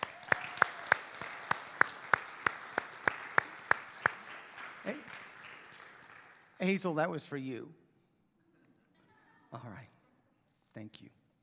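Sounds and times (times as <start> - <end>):
audience applause: 0.0 - 6.9
speech: 6.6 - 7.8, 9.5 - 9.9, 10.8 - 11.2.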